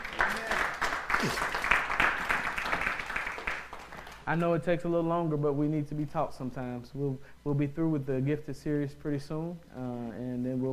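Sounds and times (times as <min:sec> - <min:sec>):
audience clapping: 0:00.0 - 0:04.3
speech: 0:01.2 - 0:01.6, 0:04.3 - 0:10.7.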